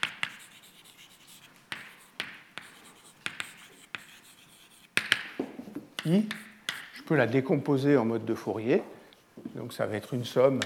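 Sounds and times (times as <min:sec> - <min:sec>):
writing on a board: 0:00.0 - 0:05.2, 0:06.0 - 0:07.0
speech: 0:06.1 - 0:06.4, 0:07.1 - 0:09.0, 0:09.6 - 0:10.6.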